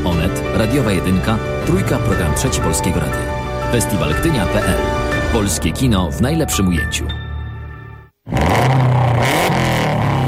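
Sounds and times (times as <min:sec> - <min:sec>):
speech: 0:00.2 - 0:07.2
280 horsepower rally car engine revving: 0:08.3 - 0:10.2.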